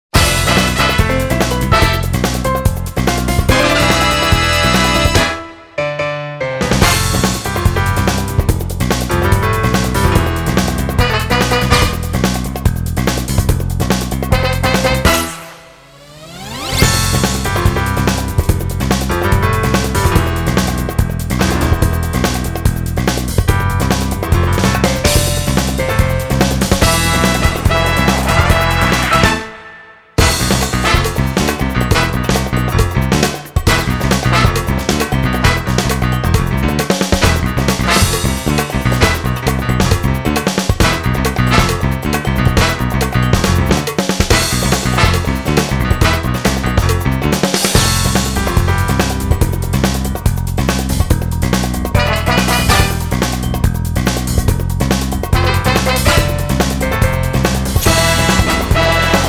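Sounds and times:
music: 0:00.0 - 0:59.2.

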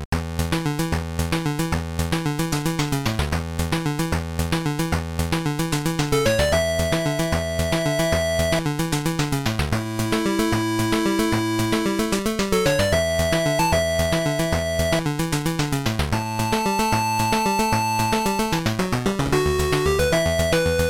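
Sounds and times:
chiptune music: 0:00.1 - 0:20.8.

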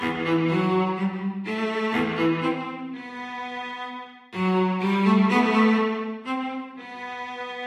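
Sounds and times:
rhythmic cello: 0:00.0 - 0:07.6.

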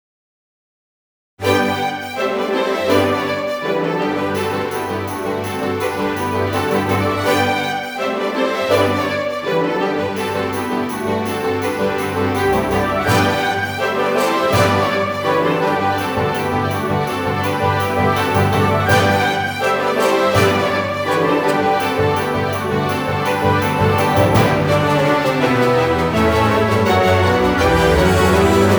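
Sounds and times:
orchestral Russian dance music: 0:01.5 - 0:28.7.

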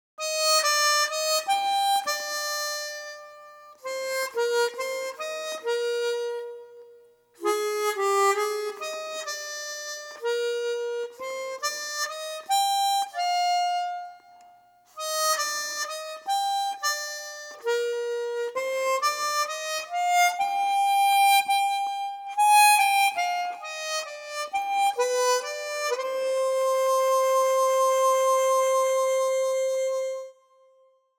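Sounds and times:
harmonica: 0:00.2 - 0:30.7.

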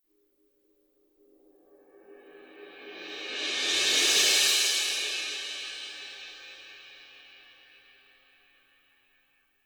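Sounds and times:
cymbal: 0:01.8 - 0:08.6.

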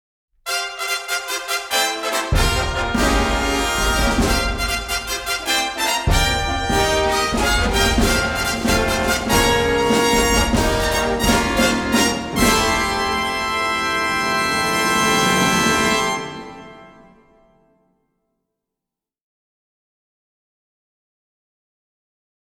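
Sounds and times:
race fanfare: 0:00.4 - 0:17.6.

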